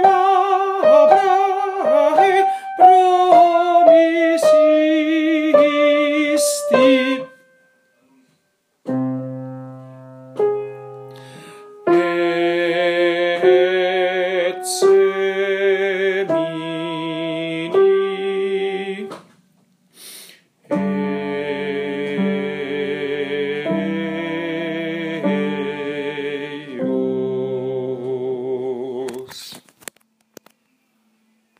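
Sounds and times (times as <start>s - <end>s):
soprano singing: 0.0s - 7.5s, 11.6s - 19.2s, 20.7s - 29.3s.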